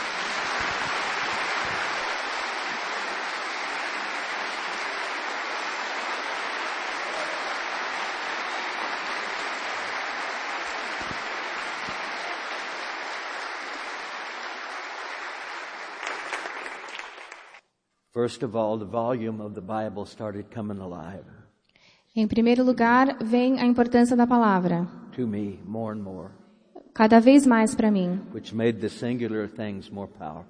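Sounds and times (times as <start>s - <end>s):
audience applause: 0.0s - 17.6s
speech: 18.2s - 21.4s, 22.2s - 26.4s, 27.0s - 30.4s.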